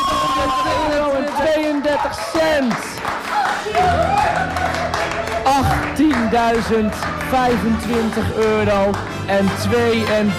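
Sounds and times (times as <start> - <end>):
people cheering and whooping: 0.0 - 7.4
crowd applause: 0.0 - 10.3
speech: 6.3 - 10.3.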